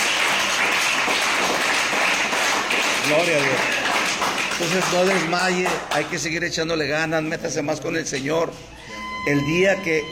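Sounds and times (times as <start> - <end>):
church congregation applauding: 0.0 - 6.3
speech: 3.1 - 10.1.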